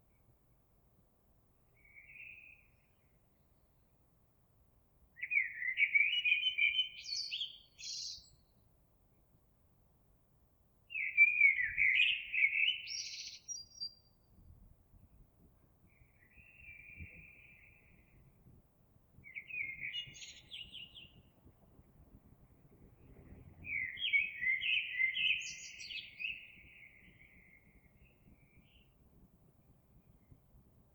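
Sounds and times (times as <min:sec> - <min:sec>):
Eurasian blackbird song: 0:01.7 - 0:03.4, 0:05.2 - 0:08.7, 0:10.9 - 0:15.0, 0:15.8 - 0:18.5, 0:19.1 - 0:30.9.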